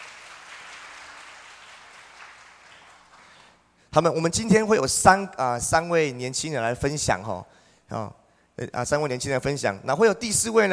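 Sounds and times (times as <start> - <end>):
audience clapping in welcome: 0.0 - 3.6
speech: 3.9 - 10.7.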